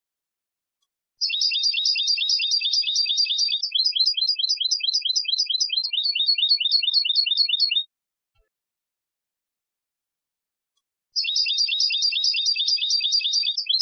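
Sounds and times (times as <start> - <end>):
European goldfinch Carduelis carduelis singing: 1.2 - 7.8, 11.2 - 13.8.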